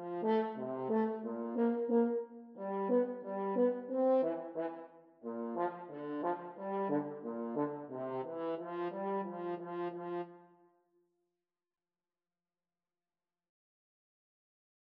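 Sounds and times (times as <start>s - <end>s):
horn duet playing a hornpipe: 0.0s - 10.4s.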